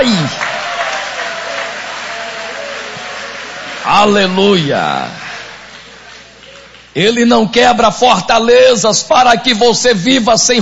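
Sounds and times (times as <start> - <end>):
church congregation applauding during worship: 0.0 - 7.8
speech: 4.0 - 5.2, 6.9 - 10.6.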